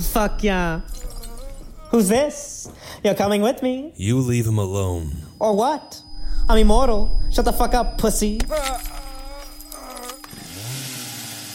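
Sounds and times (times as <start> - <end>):
speech: 0.0 - 1.1, 1.9 - 9.0
chainsaw revving: 10.3 - 11.5.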